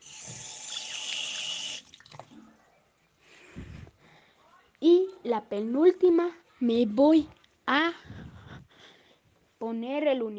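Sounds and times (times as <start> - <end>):
running tap water for washing hands: 0.0 - 2.3
hands splashing and squishing: 1.8 - 2.4
speech: 5.3 - 8.2, 9.6 - 10.3.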